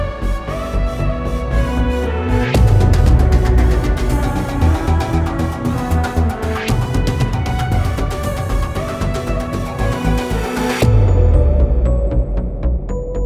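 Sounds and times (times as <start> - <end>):
epic game intro music: 0.2 - 13.1.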